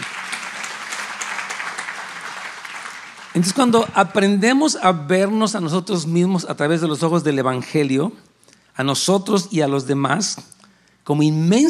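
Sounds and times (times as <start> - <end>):
audience applause: 0.0 - 3.9
speech: 3.4 - 11.6.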